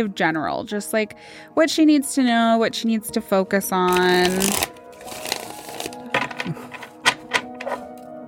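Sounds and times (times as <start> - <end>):
speech: 0.0 - 5.2
deck of cards being shuffled: 3.9 - 7.9.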